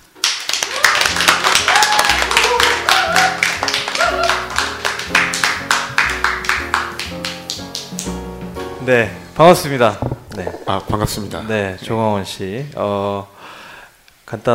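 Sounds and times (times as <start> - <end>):
applause welcoming a guest: 0.0 - 8.1
speech: 8.9 - 13.4, 14.3 - 14.5.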